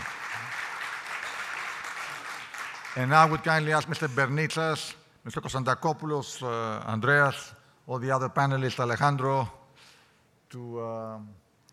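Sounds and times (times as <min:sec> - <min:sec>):
crowd applause: 0:00.0 - 0:03.4
speech: 0:03.0 - 0:09.6, 0:10.5 - 0:11.4.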